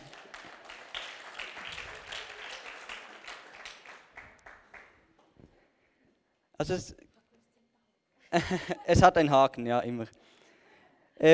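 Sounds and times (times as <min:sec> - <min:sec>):
audience applause: 0:00.0 - 0:05.0
speech: 0:06.6 - 0:07.0, 0:08.3 - 0:10.2
laughter: 0:08.4 - 0:09.2.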